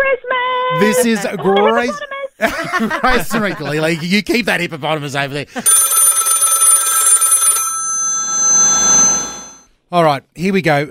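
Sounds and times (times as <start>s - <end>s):
laughter: 0.7s - 4.5s
speech: 0.8s - 5.9s, 8.7s - 9.2s, 9.9s - 10.8s
telephone ringing for an incoming caller: 5.6s - 9.7s.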